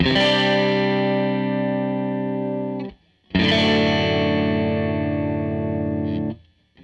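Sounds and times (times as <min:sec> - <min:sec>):
Strat guitar loop: 0:00.0 - 0:06.8.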